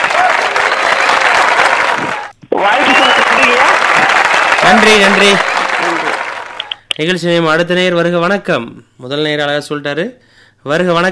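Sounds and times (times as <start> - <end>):
audience applause: 0.0 - 6.8
speech: 4.7 - 5.5, 7.0 - 11.1.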